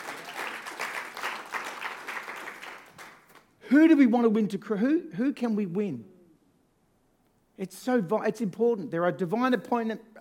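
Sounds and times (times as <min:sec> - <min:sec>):
audience clapping: 0:00.0 - 0:03.6
speech: 0:03.7 - 0:06.1, 0:07.6 - 0:10.1.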